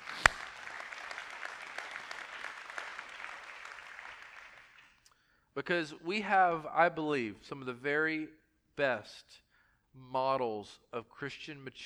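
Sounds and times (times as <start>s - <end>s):
audience applauding: 0.0s - 5.1s
speech: 5.6s - 9.4s, 10.0s - 11.8s.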